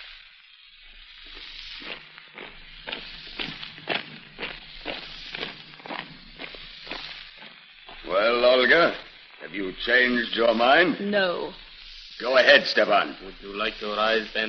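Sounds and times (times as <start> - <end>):
constant broadband hiss: 0.0 - 14.4
marching footsteps of a firing party escorting a prisoner: 1.3 - 8.2
speech: 9.6 - 11.6, 12.2 - 14.4.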